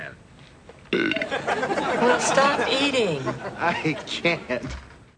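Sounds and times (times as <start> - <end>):
person burping: 0.9 - 1.4
laughter: 1.2 - 4.6.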